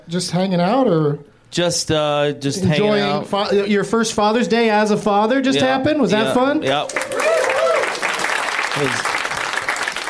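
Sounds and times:
speech: 0:00.1 - 0:07.2, 0:08.8 - 0:09.1
audience applause: 0:06.7 - 0:10.0.

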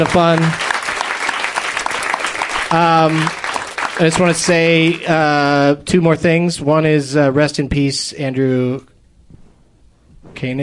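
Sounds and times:
speech: 0:00.0 - 0:00.6, 0:02.7 - 0:03.4, 0:04.0 - 0:08.9, 0:10.4 - 0:10.6
audience applause: 0:00.0 - 0:05.2.

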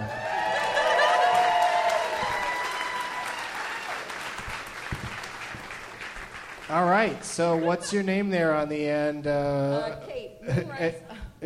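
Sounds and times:
laughter: 0:00.0 - 0:01.6
audience applause: 0:00.0 - 0:07.9
speech: 0:06.7 - 0:11.4.

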